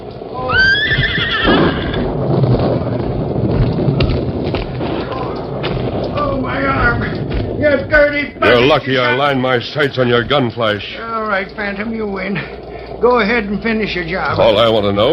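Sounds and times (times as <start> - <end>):
Silver, the Lone Ranger's horse, whinnying in an old-time radio western: 0.4 - 2.0
horse hoof thumps: 1.4 - 8.2
speech: 8.6 - 15.1.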